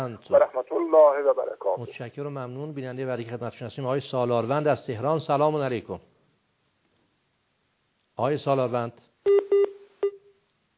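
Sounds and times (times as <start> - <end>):
speech: 0.0 - 6.1, 8.2 - 9.7
electronic telephone tones as a caller's line drops: 9.3 - 10.3.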